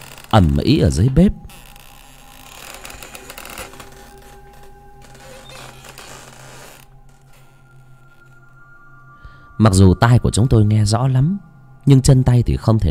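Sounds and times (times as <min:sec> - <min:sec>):
sliding door creaking open: 0:00.0 - 0:00.4, 0:01.5 - 0:08.3
speech: 0:00.4 - 0:01.4, 0:09.6 - 0:12.8.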